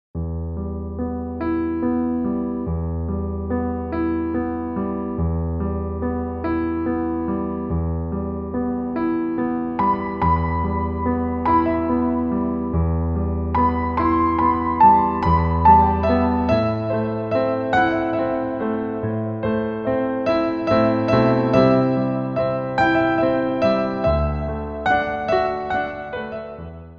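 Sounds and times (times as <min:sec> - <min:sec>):
pop piano: 0:00.2 - 0:26.9.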